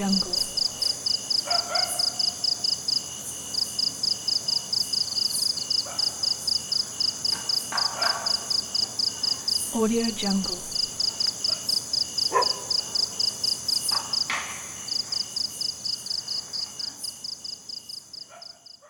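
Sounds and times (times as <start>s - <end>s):
speech: 0.0s - 0.4s, 9.8s - 10.7s
cricket chirping: 0.0s - 18.8s.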